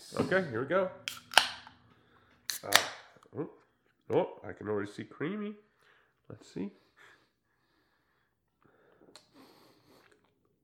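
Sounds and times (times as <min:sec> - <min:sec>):
speech: 0:00.1 - 0:01.1, 0:02.6 - 0:05.7, 0:06.3 - 0:06.8
drink cans being cracked open: 0:01.1 - 0:01.8, 0:02.5 - 0:03.1.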